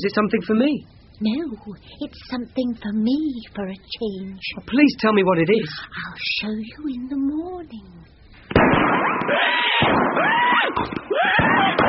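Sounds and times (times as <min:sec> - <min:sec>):
speech: 0:00.0 - 0:11.8
fireworks crackling bursts: 0:08.4 - 0:11.8.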